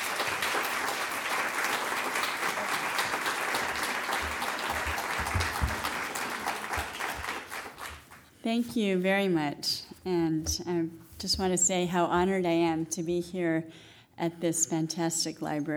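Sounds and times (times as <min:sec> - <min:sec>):
audience applause welcoming an author at the LA Central Library: 0:00.0 - 0:08.2
speech: 0:08.4 - 0:15.7
soft low thumps: 0:08.5 - 0:12.8.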